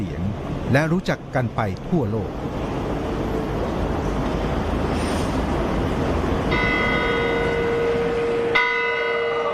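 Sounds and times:
steady outdoor noise: 0.0s - 9.5s
speech: 0.7s - 2.6s
clock tower bells chiming in Bern: 6.5s - 9.5s.

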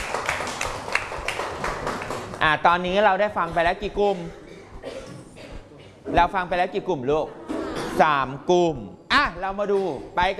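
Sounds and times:
clapping: 0.0s - 2.5s
speech: 2.4s - 4.4s, 6.1s - 7.4s, 8.0s - 10.3s.

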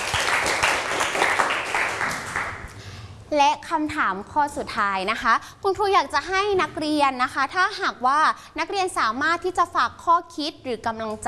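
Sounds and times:
applause: 0.0s - 2.8s
speech: 3.4s - 11.2s.

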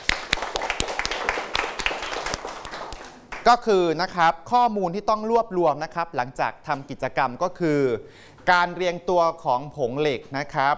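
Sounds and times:
group of students clapping: 0.0s - 3.6s
speech: 3.4s - 10.7s.

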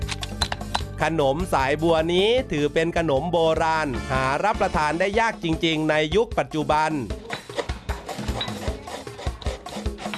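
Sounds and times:
speech: 1.0s - 7.3s
grating coconut: 7.2s - 10.1s.

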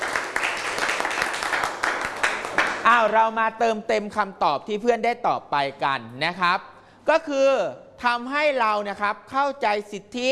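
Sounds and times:
class clapping hands: 0.0s - 3.1s
speech: 2.8s - 10.3s.

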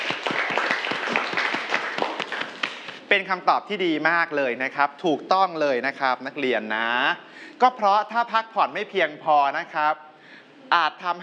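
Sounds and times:
students applauding: 0.0s - 3.0s
speech: 3.1s - 10.1s, 10.7s - 11.2s.

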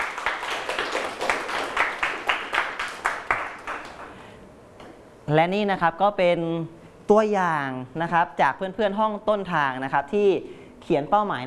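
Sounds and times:
classroom clapping: 0.0s - 4.2s
speech: 5.3s - 11.4s.

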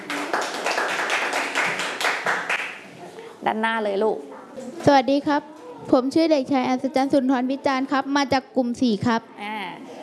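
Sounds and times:
group of students clapping for a classmate: 0.0s - 2.8s
speech: 3.4s - 9.5s.

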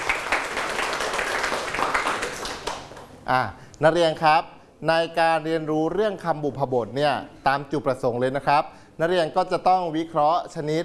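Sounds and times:
students clapping for winning group: 0.0s - 3.2s
speech: 3.3s - 10.8s.

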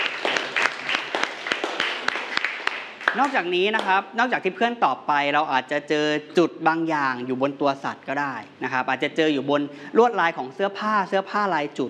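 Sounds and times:
classroom applause: 0.0s - 3.9s
speech: 3.1s - 11.8s.

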